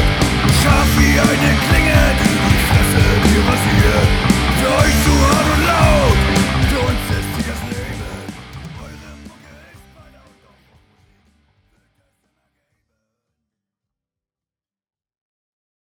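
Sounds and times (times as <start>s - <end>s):
rock music: 0.0s - 11.5s.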